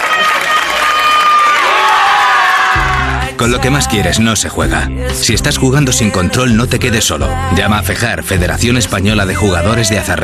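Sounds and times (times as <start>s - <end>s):
wedding guests cheering and shouting: 0.0s - 4.2s
speech: 3.4s - 10.2s.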